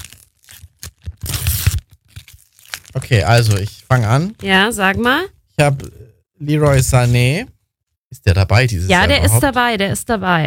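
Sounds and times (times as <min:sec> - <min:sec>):
pack of World Cup football trading cards torn open: 0:00.0 - 0:03.8
speech: 0:03.1 - 0:07.5, 0:08.2 - 0:10.4.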